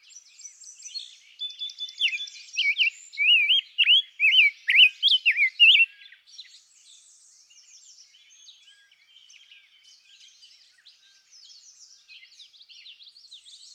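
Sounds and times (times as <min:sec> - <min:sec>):
birds twittering: 0:00.8 - 0:06.2
rose-breasted grosbeak song: 0:02.0 - 0:05.9.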